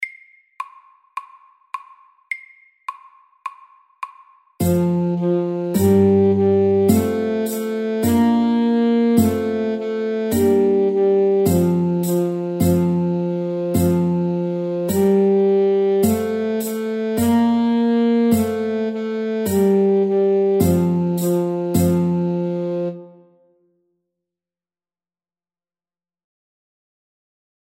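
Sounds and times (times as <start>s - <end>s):
Norwegian folk tune: 4.6s - 23.4s.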